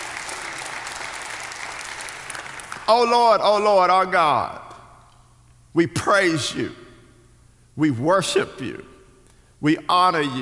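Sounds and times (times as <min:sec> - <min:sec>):
audience applause and hand clapping: 0:00.0 - 0:03.1
speech: 0:02.9 - 0:04.6, 0:05.8 - 0:06.8, 0:07.8 - 0:08.9, 0:09.6 - 0:10.3.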